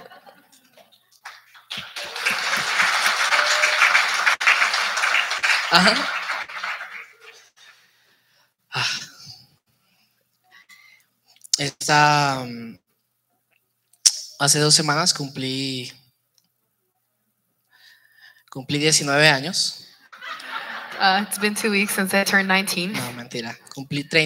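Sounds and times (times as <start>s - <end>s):
laughter: 0.0s - 0.9s, 20.1s - 21.4s
audience applause: 0.8s - 7.7s
speech: 5.7s - 6.2s, 11.9s - 12.8s, 14.4s - 16.0s, 18.7s - 19.8s, 21.0s - 24.2s.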